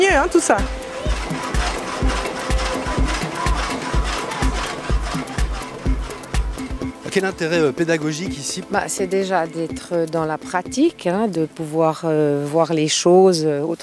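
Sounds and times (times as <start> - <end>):
speech: 0.0 - 1.4, 7.1 - 13.8
water-powered saw gear mechanism clanking: 0.0 - 10.9.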